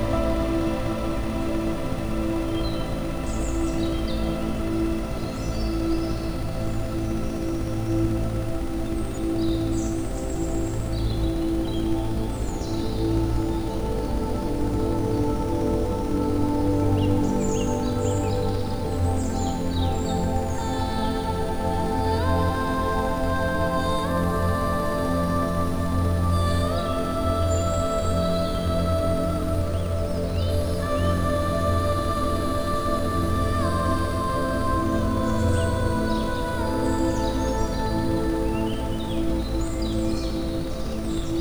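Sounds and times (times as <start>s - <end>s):
ambient sound with Rife frequencies: 0.0s - 41.3s.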